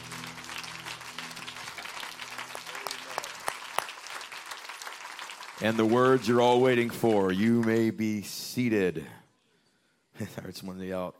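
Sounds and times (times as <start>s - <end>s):
audience clapping hands: 0.0s - 8.3s
speech: 5.6s - 9.2s, 10.2s - 11.1s.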